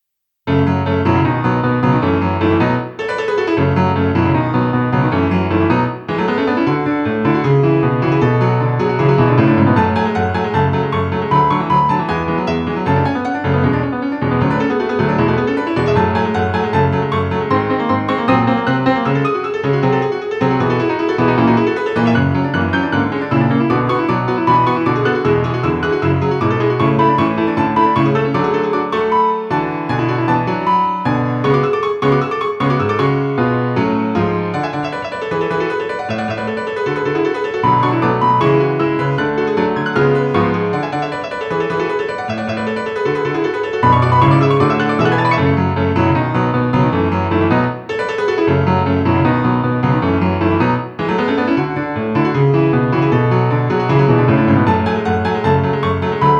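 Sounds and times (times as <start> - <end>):
piano: 0.0 - 56.3.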